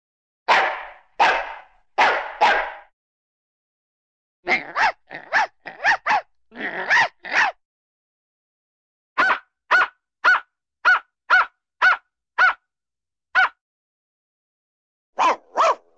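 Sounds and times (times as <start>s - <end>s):
small dog barking: 0.5s - 2.9s, 4.5s - 7.6s, 9.2s - 12.6s, 13.4s - 13.6s, 15.2s - 15.9s.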